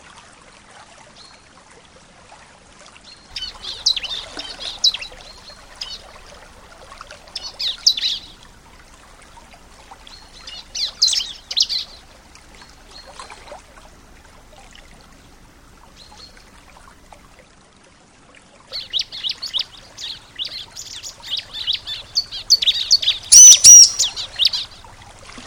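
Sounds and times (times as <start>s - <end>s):
bar-winged prinia singing: 3.3s - 8.6s, 9.9s - 13.1s, 18.8s - 25.0s.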